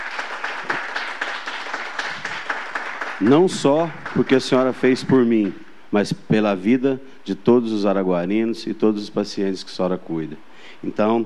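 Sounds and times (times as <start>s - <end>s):
audience applause: 0.0s - 5.3s
speech: 3.2s - 11.2s.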